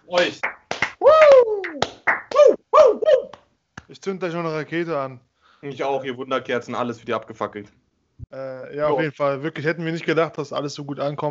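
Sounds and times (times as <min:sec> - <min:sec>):
speech: 0:00.1 - 0:00.5, 0:04.0 - 0:11.2
hand clapping applause: 0:00.2 - 0:02.6.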